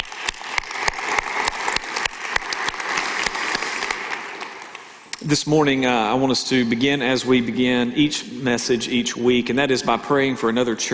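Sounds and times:
audience applause at a church service: 0.0s - 5.2s
speech: 5.3s - 10.9s.

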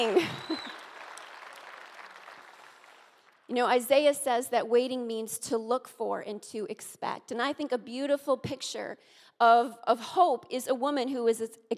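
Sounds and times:
speech: 0.0s - 0.7s, 3.5s - 11.7s
audience clapping: 0.0s - 3.5s.

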